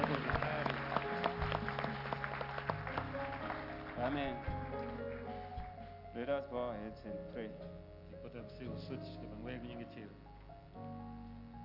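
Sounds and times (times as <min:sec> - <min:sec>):
crowd clapping: 0:00.0 - 0:06.0
speech: 0:04.1 - 0:04.6, 0:06.2 - 0:11.0.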